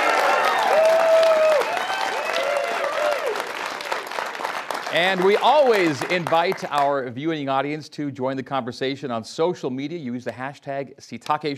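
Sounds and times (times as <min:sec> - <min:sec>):
live studio audience cheering and whooping: 0:00.0 - 0:04.1
live studio audience applauding in Provo Utah: 0:00.0 - 0:07.1
speech: 0:04.9 - 0:11.5.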